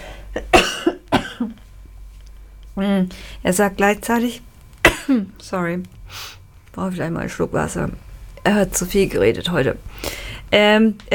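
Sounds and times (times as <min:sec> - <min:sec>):
person coughing: 0:00.3 - 0:01.6, 0:04.8 - 0:05.3
speech: 0:02.8 - 0:04.5, 0:05.1 - 0:11.1.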